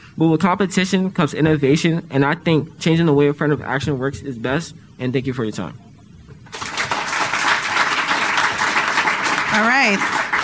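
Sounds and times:
speech: 0:00.2 - 0:05.9, 0:09.6 - 0:10.4
audience applause: 0:06.5 - 0:10.4.

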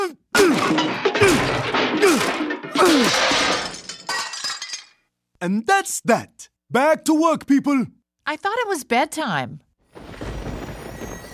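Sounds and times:
hammer smashing a PCD device: 0:00.4 - 0:04.3
debris crunching and shattering: 0:00.4 - 0:05.0
speech: 0:05.4 - 0:09.6.

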